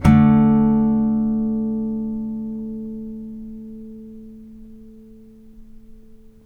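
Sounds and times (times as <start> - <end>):
blues guitar sample: 0.0 - 6.4.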